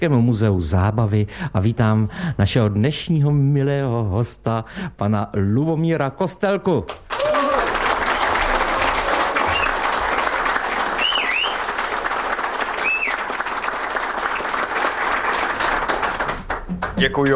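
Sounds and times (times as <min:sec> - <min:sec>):
speech: 0:00.0 - 0:07.2, 0:17.0 - 0:17.3
audience applause: 0:07.0 - 0:17.3.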